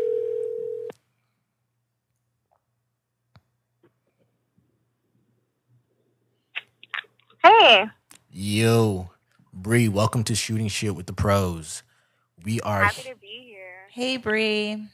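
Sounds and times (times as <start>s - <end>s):
phone ringback tone: 0.0s - 0.9s
speech: 7.7s - 13.4s, 14.0s - 14.9s.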